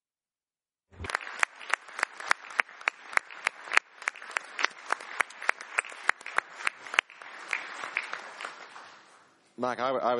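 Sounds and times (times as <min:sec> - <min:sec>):
crowd applause: 0:00.9 - 0:09.4.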